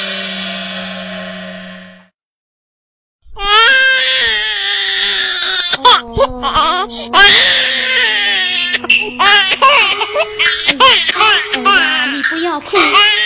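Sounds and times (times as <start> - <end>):
baby crying in a Gannan tea-picking opera scene: 3.4 - 13.2.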